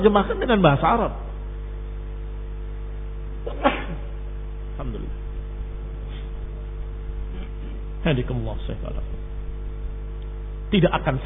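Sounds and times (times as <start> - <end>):
speech: 0.0 - 1.2, 8.0 - 9.2, 10.7 - 11.2
steady low hum: 0.0 - 11.2
person sneezing: 3.4 - 4.2
softer breathy sound: 6.0 - 6.6.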